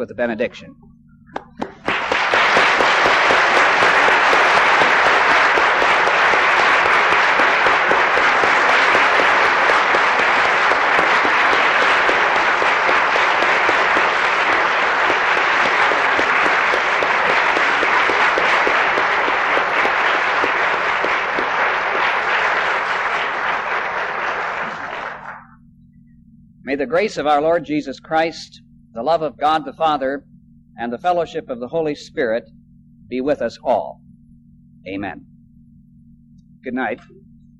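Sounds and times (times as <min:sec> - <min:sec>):
speech: 0:00.0 - 0:00.8, 0:26.8 - 0:34.0, 0:34.8 - 0:35.3, 0:36.6 - 0:37.2
audience applauding: 0:01.4 - 0:25.5.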